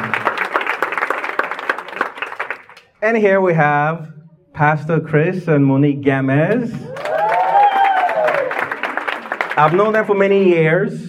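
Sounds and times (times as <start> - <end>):
crowd applause: 0.0 - 2.8, 6.9 - 10.6
speech: 3.0 - 7.0, 9.6 - 11.0.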